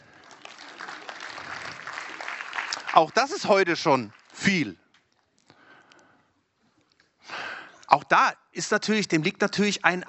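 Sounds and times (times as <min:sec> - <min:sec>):
faint audience applause: 0:00.0 - 0:04.5
speech: 0:03.0 - 0:04.8, 0:07.9 - 0:10.0.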